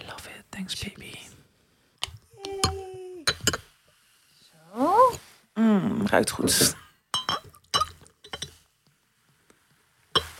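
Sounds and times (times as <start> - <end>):
speech: 0.6 - 1.2, 6.1 - 6.8
champagne glasses clinking in a toast: 2.6 - 3.7, 7.1 - 8.6, 10.2 - 10.3.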